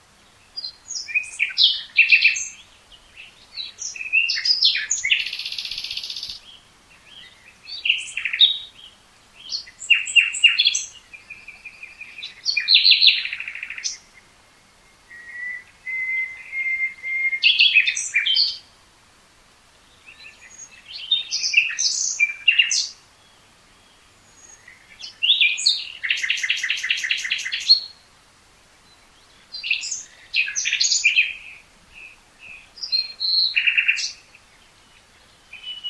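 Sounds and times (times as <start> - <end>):
common nightingale singing: 0.0 - 18.8, 19.7 - 35.8.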